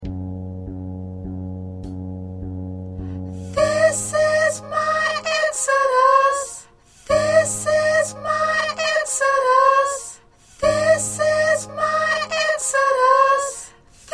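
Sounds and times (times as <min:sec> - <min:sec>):
soprano singing: 0:03.2 - 0:14.1.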